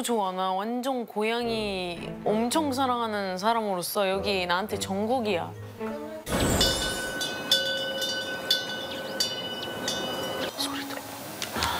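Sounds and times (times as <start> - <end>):
speech: 0.0 - 6.6
wind chime ringing: 6.3 - 10.5.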